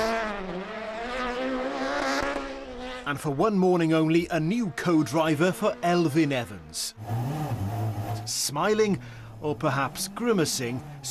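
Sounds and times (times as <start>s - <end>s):
rally car engine taking a gentle spin around Glasgow city streets: 0.0s - 11.0s
speech: 3.1s - 11.0s.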